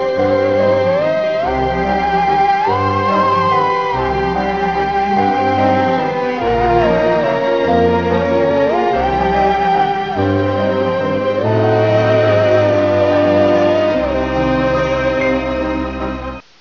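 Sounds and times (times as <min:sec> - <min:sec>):
alien tune: 0:00.0 - 0:16.4.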